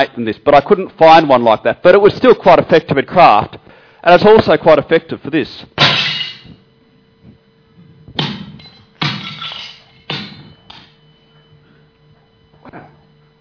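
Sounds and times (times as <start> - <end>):
speech: 0.0 - 5.8
pottery smashed with a rod: 5.8 - 6.6, 8.2 - 10.9.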